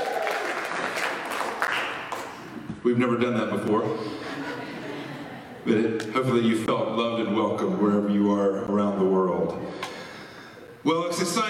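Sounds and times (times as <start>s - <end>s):
crowd clapping and cheering: 0.0s - 2.5s
speech: 2.8s - 4.5s, 5.6s - 9.9s, 10.8s - 11.4s
laughter: 4.0s - 5.8s.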